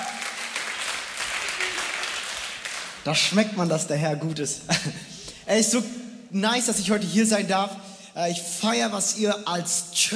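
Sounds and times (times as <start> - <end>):
youth church audience applause in Wuppertal: 0.0 - 3.0
speech: 3.0 - 10.1.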